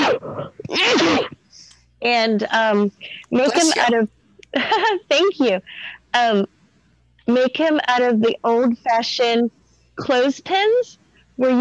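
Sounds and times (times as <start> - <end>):
person sneezing: 0.0 - 1.4, 3.5 - 3.9
speech: 2.0 - 6.6, 7.3 - 11.6.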